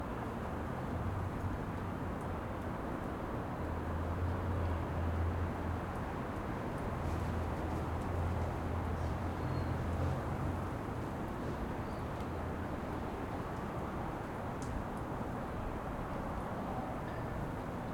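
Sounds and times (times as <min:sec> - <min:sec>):
wind on a quiet street: 0:00.0 - 0:17.9.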